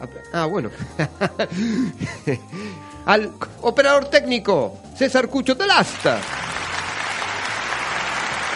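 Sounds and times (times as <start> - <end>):
speech: 0.0 - 6.4
laughter: 0.8 - 2.5
audience applause: 5.8 - 8.5.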